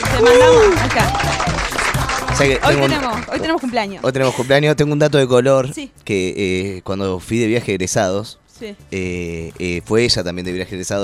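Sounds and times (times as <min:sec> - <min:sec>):
applause: 0:00.0 - 0:04.2
speech: 0:00.2 - 0:01.3, 0:02.4 - 0:11.0.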